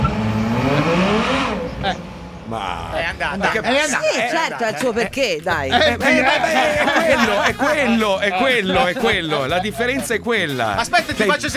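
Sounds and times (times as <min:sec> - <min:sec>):
V12 car engine pulling away: 0:00.0 - 0:08.3
laughter: 0:00.0 - 0:11.5
speech: 0:03.2 - 0:11.5.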